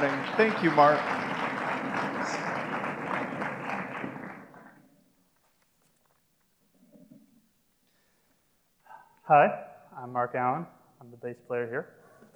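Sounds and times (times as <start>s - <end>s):
speech: 0.0s - 1.2s, 9.3s - 12.0s
church congregation applauding to welcome their bass player: 0.0s - 5.0s.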